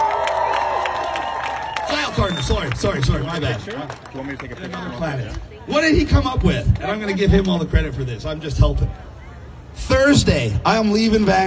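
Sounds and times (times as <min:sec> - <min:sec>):
audience applause and cheering: 0:00.0 - 0:04.8
speech: 0:02.1 - 0:09.1, 0:09.8 - 0:11.4.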